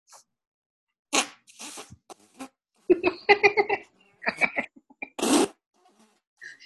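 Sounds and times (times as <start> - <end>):
voice imitating fart sounds with the mouth: 1.1 - 2.6, 5.0 - 6.2
laughter: 2.9 - 5.2.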